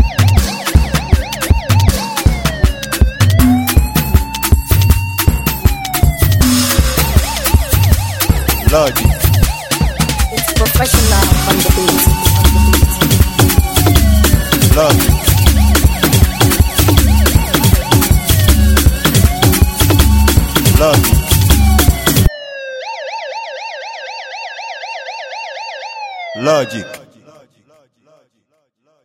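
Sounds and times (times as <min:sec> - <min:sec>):
professional ogba beat: 0:00.0 - 0:22.3.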